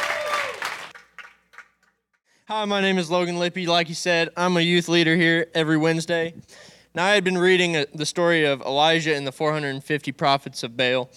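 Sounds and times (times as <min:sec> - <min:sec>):
audience applause: 0:00.0 - 0:01.9
speech: 0:02.5 - 0:11.1.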